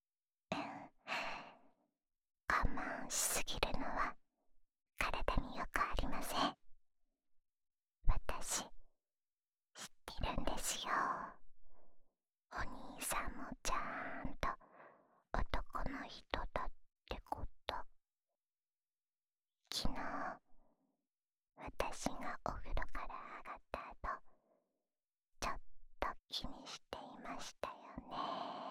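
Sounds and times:
woman whispering ASMR: 0.5s - 1.6s, 2.5s - 4.2s, 5.0s - 6.6s, 8.1s - 8.7s, 9.8s - 11.4s, 12.5s - 14.6s, 15.4s - 17.9s, 19.7s - 20.5s, 21.6s - 24.2s, 25.4s - 28.6s.

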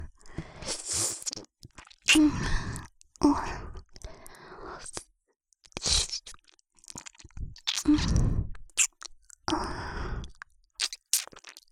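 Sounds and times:
right ear licking: 0.6s - 2.9s, 5.6s - 9.5s, 10.2s - 11.7s.

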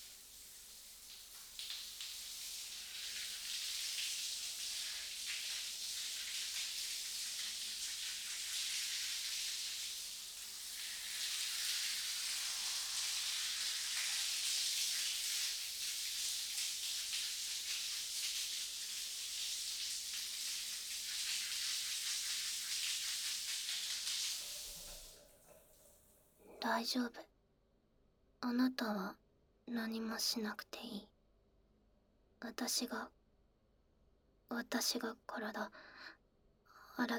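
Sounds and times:
shower water spraying: 0.0s - 26.1s
speech: 26.8s - 27.3s, 28.4s - 31.1s, 32.4s - 33.2s, 34.5s - 36.2s, 37.0s - 37.1s.

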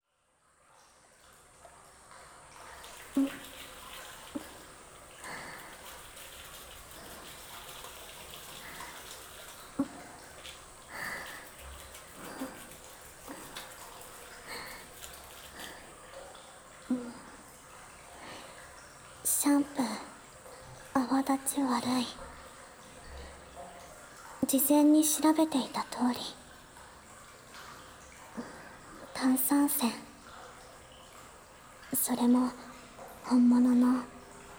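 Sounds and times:
soap shampoo lathering with natural carbonated spring water: 2.6s - 34.5s
massage with natural carbonated water: 2.8s - 17.6s.

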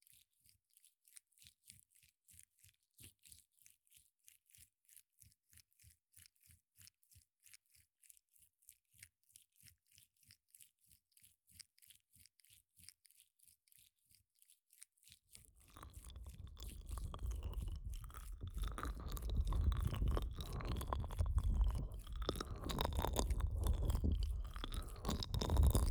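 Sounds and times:
ASMR ear licking in the right ear: 15.7s - 25.9s.

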